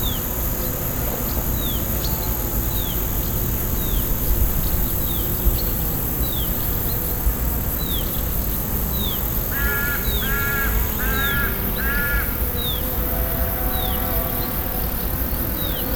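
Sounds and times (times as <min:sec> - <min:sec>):
cicadas: 0:00.0 - 0:15.9
insects buzzing: 0:00.0 - 0:15.9
yellow-legged gull calling: 0:09.6 - 0:14.8.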